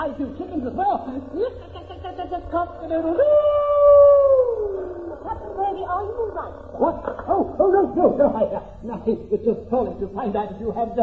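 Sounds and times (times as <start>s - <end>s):
speech: 0.0s - 3.7s, 5.2s - 11.0s
laughter: 1.1s - 8.8s
man's voice imitating a sheepdog howling: 3.2s - 5.5s.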